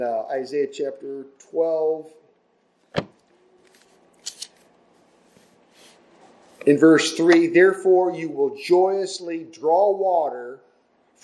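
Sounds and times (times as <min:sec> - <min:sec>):
speech: 0:00.0 - 0:02.2, 0:06.6 - 0:10.6
Bible pages being turned: 0:03.0 - 0:06.7.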